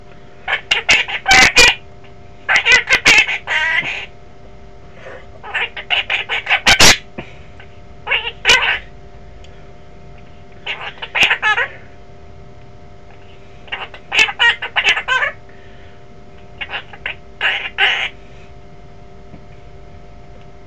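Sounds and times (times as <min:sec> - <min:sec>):
Quaker parrot: 0:00.5 - 0:01.8, 0:02.5 - 0:04.1, 0:05.0 - 0:08.9, 0:10.6 - 0:11.9, 0:13.2 - 0:15.4, 0:16.6 - 0:18.2.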